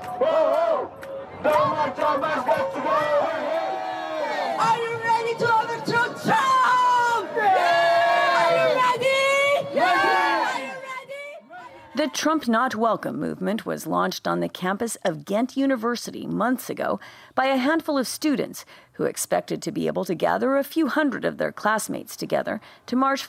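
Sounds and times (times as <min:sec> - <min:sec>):
crowd of protesters in Brussels chanting and whooping against Donald Trump's visit: 0:00.0 - 0:12.2
speech: 0:12.0 - 0:23.2.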